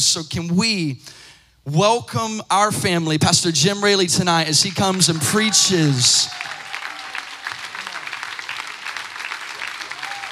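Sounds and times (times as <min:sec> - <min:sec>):
speech: 0:00.0 - 0:06.6
large audience applause: 0:04.9 - 0:10.3.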